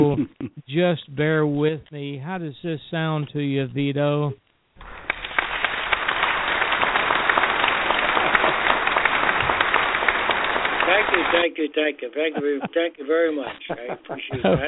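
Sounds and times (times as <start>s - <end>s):
laughter: 0.0s - 0.6s, 10.8s - 14.6s
speech: 0.0s - 5.0s, 11.1s - 14.6s
recorded crowd applause sound effect: 4.8s - 11.7s.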